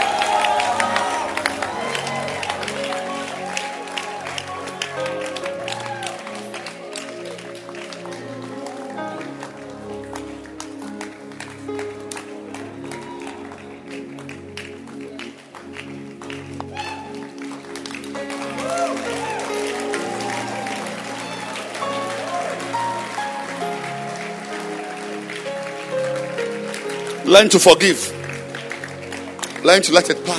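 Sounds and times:
audience clapping hands: 0.0 - 30.3
crowd murmuring: 0.0 - 30.3
speech: 27.3 - 28.2, 29.6 - 30.3.

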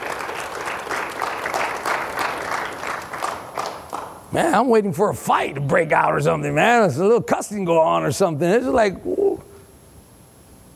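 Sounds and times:
audience applauding: 0.0 - 4.2
speech: 4.3 - 9.2.

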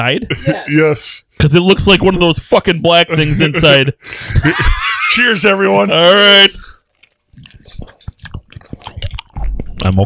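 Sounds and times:
speech: 0.0 - 6.7, 9.8 - 10.0
laughter: 3.0 - 5.9
person chewing a snack: 6.5 - 10.0.

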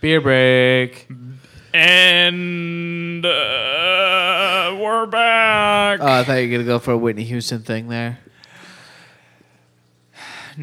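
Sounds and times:
speech: 0.0 - 1.2, 1.8 - 8.3
person taking a deep breath: 8.4 - 9.6, 10.2 - 10.6.

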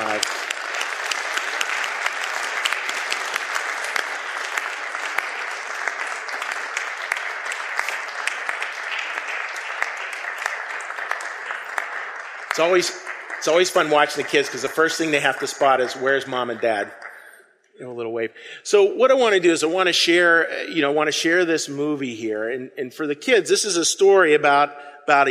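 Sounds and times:
audience applause: 0.0 - 17.4
speech: 12.6 - 17.0, 17.8 - 25.2.

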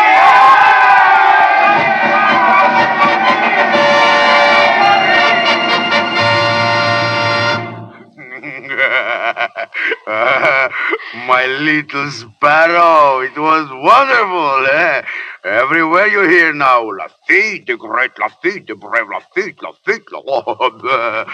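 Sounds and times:
large crowd cheering in triumph: 0.0 - 7.8
laughter: 8.0 - 11.8, 17.9 - 21.3
speech: 11.4 - 21.3.

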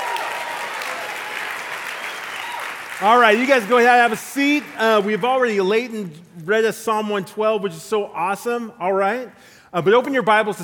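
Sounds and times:
audience applause: 0.0 - 5.4
speech: 3.0 - 10.6.

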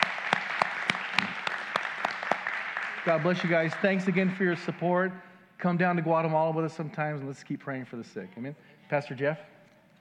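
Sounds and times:
crowd clapping: 0.0 - 4.8
speech: 3.0 - 9.5.

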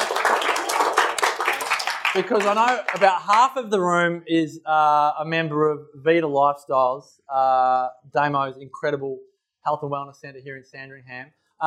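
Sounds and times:
audience round of applause: 0.0 - 3.5
speech: 2.1 - 11.6.

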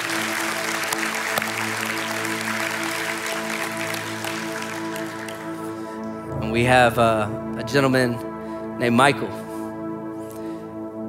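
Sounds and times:
audience clapping: 0.0 - 6.1
sustained low musical tones: 0.0 - 11.0
speech: 6.5 - 9.4.

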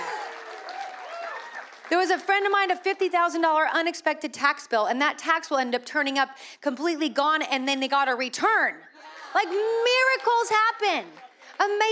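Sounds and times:
audience applause: 0.0 - 2.0
speech: 1.9 - 11.9.

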